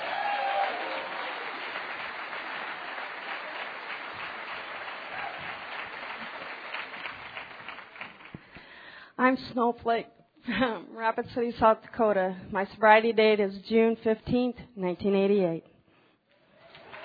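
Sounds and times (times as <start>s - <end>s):
audience applause: 0.0s - 8.6s, 16.6s - 17.0s
speech: 9.2s - 15.7s.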